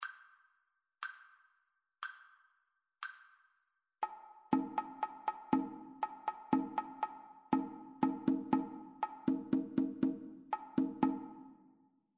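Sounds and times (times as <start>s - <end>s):
two-part rhythm: 4.0s - 11.7s.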